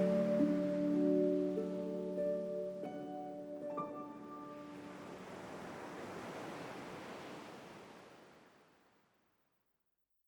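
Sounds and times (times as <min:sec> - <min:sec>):
piano music: 0:00.0 - 0:05.2.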